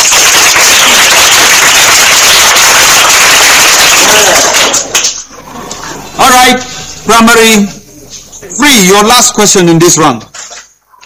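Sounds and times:
audience applause: 0.0s - 5.3s
speech: 6.5s - 7.8s, 8.6s - 10.4s.

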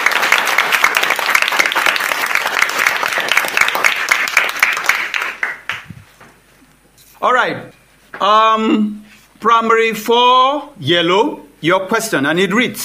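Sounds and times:
round of applause from a group: 0.0s - 6.0s
speech: 7.2s - 12.8s.

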